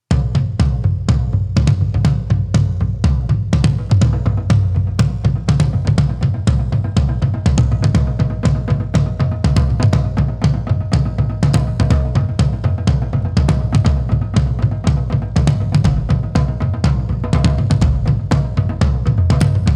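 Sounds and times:
taiko drums: 0.1s - 19.7s.

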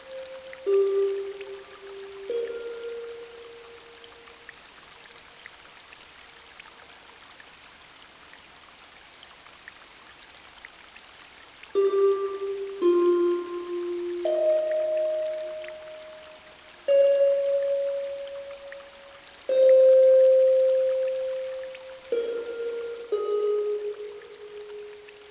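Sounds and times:
seashore waves: 0.0s - 4.0s, 11.8s - 25.2s
flowing water: 0.0s - 25.2s.

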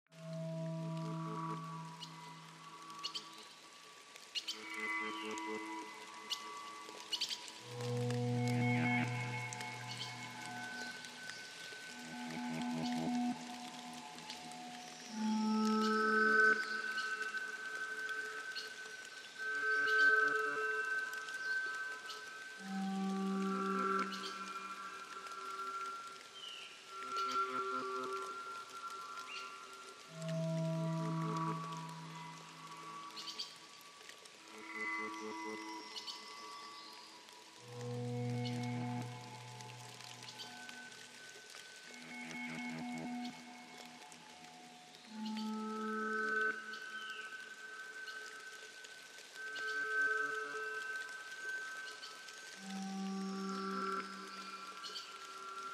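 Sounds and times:
rain in the tropics: 0.1s - 55.7s.

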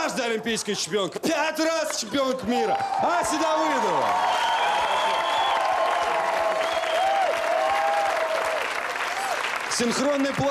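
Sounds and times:
speech: 0.2s - 5.2s, 9.8s - 10.4s
crowd applauding: 1.6s - 10.4s
whistles or cheers: 2.8s - 9.4s.

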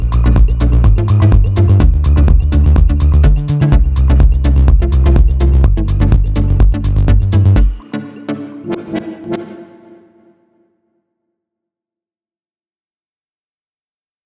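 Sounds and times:
deep house mix: 0.0s - 10.2s.

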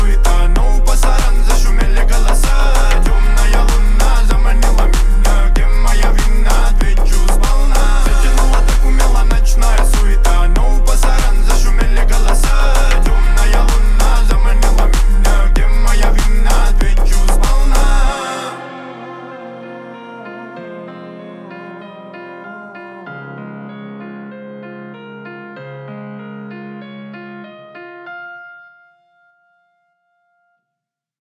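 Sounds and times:
31 to 35 Hz low bass tone: 0.0s - 19.4s.

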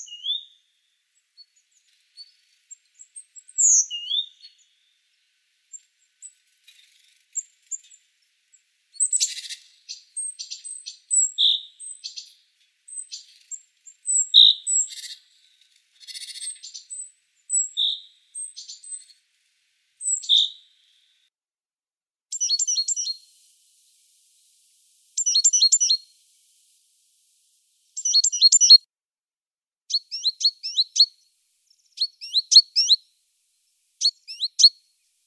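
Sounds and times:
great tit singing: 9.0s - 15.3s, 16.0s - 19.2s, 20.0s - 21.0s, 22.3s - 28.9s, 29.9s - 35.2s.

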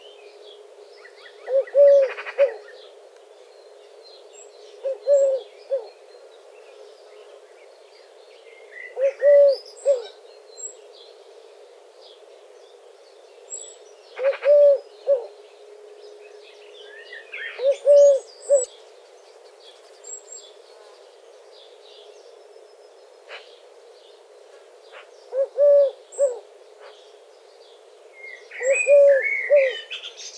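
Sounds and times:
Eurasian collared dove cooing: 1.4s - 2.9s, 4.8s - 6.0s, 8.8s - 10.2s, 14.2s - 15.4s, 17.4s - 18.8s, 24.9s - 27.0s, 28.5s - 30.0s.

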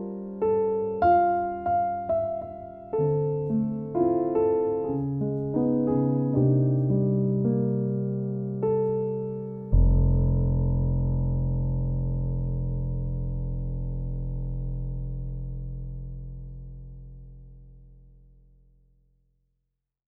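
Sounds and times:
piano interlude: 0.0s - 16.6s.

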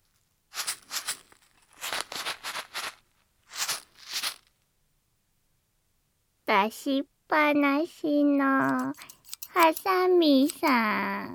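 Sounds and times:
small container of furikake rice seasoning shaken: 0.6s - 4.4s, 8.6s - 11.1s
speech: 6.6s - 11.3s.

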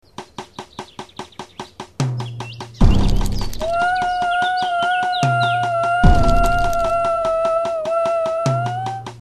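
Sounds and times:
howling: 3.6s - 9.0s.

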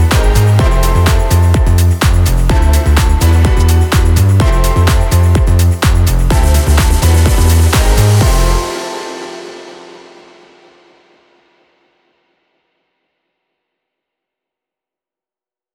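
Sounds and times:
trance music: 0.0s - 11.2s.

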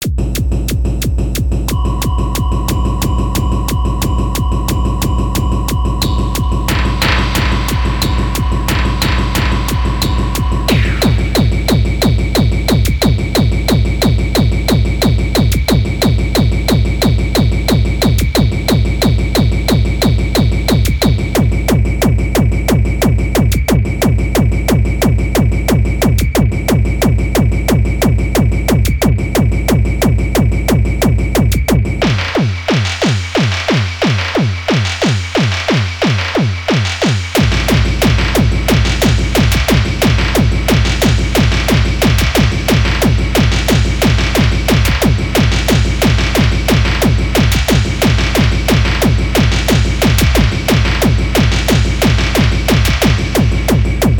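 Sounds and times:
techno music: 0.0s - 54.1s.

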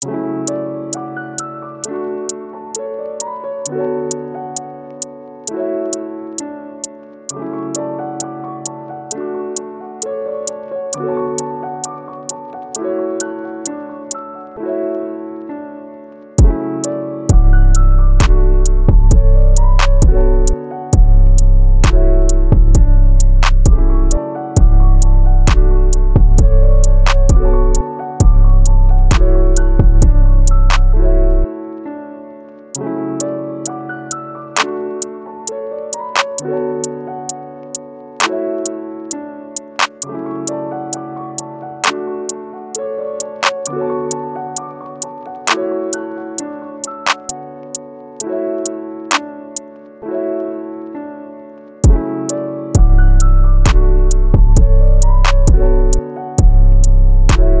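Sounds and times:
lo-fi beat: 0.0s - 10.6s, 11.4s - 14.2s, 16.4s - 31.5s, 34.1s - 49.7s, 51.8s - 57.5s.

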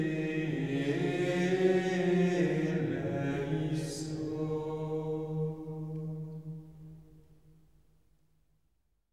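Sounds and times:
Gregorian chanting of a Kyrie: 0.0s - 6.6s.

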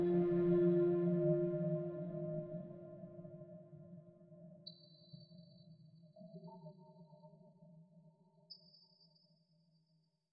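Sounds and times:
meditation massage music: 0.0s - 3.6s.

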